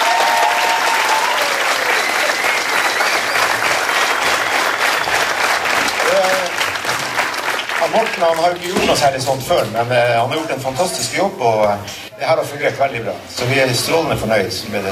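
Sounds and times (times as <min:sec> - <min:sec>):
audience applauding: 0:00.0 - 0:08.8
brief whistle-like tone: 0:01.9 - 0:03.7
speech: 0:08.0 - 0:14.9.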